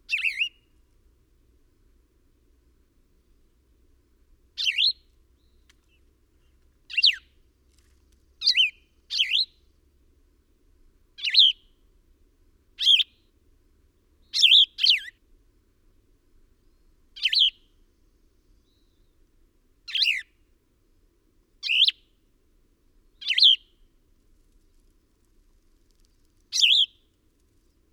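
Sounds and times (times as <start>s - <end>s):
bird chirping: 0.1s - 0.7s, 4.6s - 7.3s, 8.4s - 9.6s, 11.2s - 11.7s, 12.8s - 13.2s, 14.2s - 15.1s, 16.7s - 17.7s, 18.5s - 19.2s, 19.9s - 20.3s, 21.6s - 22.1s, 23.2s - 23.8s, 26.5s - 27.0s.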